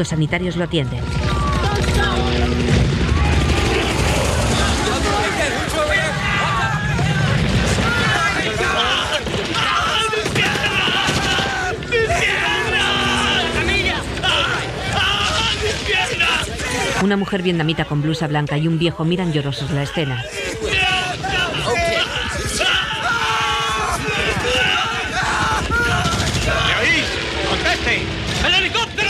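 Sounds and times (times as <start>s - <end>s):
speech: 0.0s - 1.4s, 2.0s - 3.0s, 17.0s - 20.5s
explosions in an attack on a school yard: 1.0s - 17.0s, 23.3s - 29.0s
heavy gunfire in an attack on a school yard: 1.0s - 17.0s, 20.6s - 29.0s.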